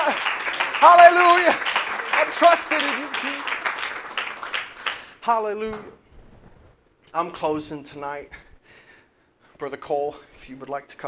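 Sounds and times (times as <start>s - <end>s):
audience clapping hands: 0.0s - 5.2s
speech: 0.1s - 3.6s, 5.2s - 6.0s, 7.1s - 8.4s, 9.6s - 11.0s.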